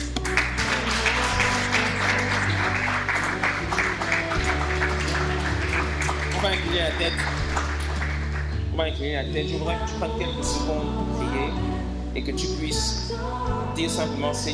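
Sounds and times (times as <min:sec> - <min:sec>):
church congregation clapping: 0:00.0 - 0:08.7
low instrumental chords: 0:00.0 - 0:14.5
speech: 0:07.0 - 0:07.4, 0:08.8 - 0:14.5.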